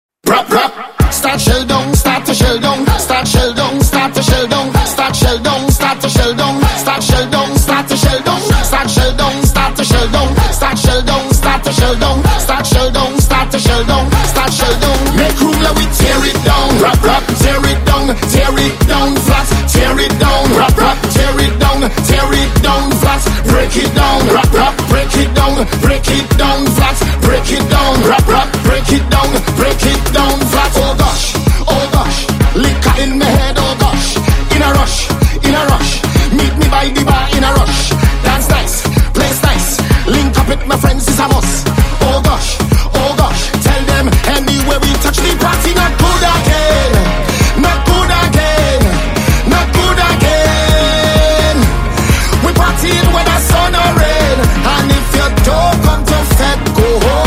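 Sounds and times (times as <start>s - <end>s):
soca music: 0.2s - 57.2s.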